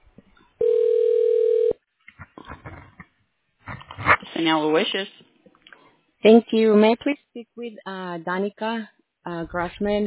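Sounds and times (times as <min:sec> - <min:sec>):
telephone beep on a phone menu: 0:00.6 - 0:01.8
speech: 0:04.4 - 0:05.2, 0:06.2 - 0:10.0.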